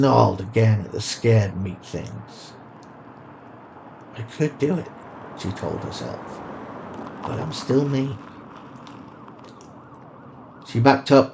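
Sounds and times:
speech: 0.0s - 2.6s, 4.2s - 6.4s, 7.2s - 8.3s, 10.7s - 11.3s
sirens wailing: 0.0s - 11.3s
rough noise: 2.5s - 11.3s.

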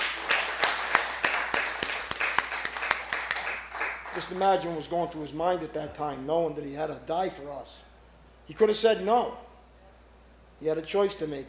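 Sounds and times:
audience applause: 0.0s - 4.7s
speech: 4.2s - 7.9s, 8.5s - 9.5s, 10.6s - 11.4s.

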